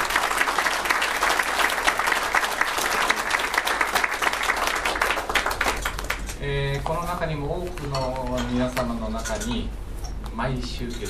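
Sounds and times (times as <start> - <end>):
large audience applause at a Japanese-language gathering: 0.0 - 6.3
speech: 6.9 - 9.8, 10.4 - 11.0.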